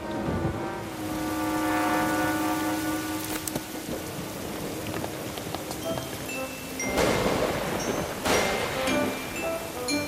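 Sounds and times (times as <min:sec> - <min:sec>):
thunder: 0:00.0 - 0:09.9.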